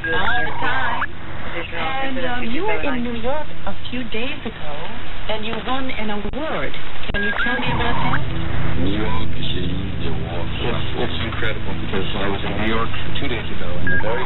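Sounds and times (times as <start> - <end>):
shortwave radio noise: 0.0 - 14.2.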